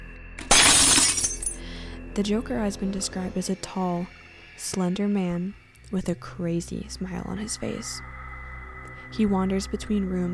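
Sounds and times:
dishes shattering on the floor: 0.4s - 1.6s
speech: 2.2s - 8.1s, 9.1s - 10.3s.

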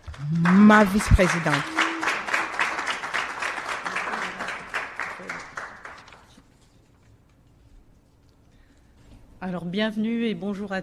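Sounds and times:
audience applause: 0.0s - 6.3s
speech: 0.2s - 1.8s, 9.7s - 10.8s.

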